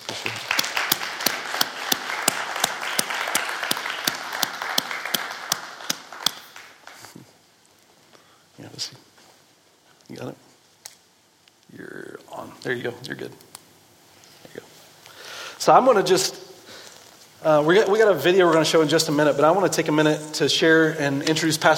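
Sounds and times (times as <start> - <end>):
audience applause welcoming a pastor to the stage: 0.0 - 7.2
speech: 12.7 - 13.5, 15.7 - 16.4, 17.4 - 21.7.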